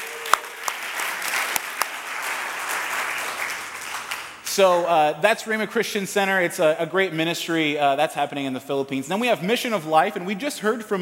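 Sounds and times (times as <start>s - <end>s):
audience applause: 0.0s - 4.4s
speech: 4.6s - 10.9s.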